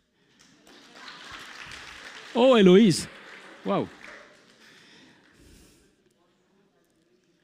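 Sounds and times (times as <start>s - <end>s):
audience applause: 0.3s - 5.5s
speech: 2.4s - 4.0s.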